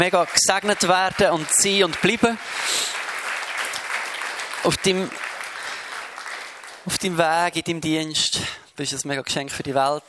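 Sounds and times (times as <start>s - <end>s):
speech: 0.0s - 2.9s, 4.6s - 5.2s, 6.8s - 10.0s
audience applause: 0.0s - 7.5s.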